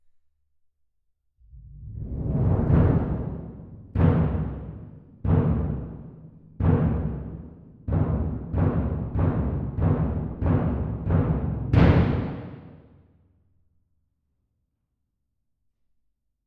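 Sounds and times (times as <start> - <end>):
percussion: 1.6 - 12.9.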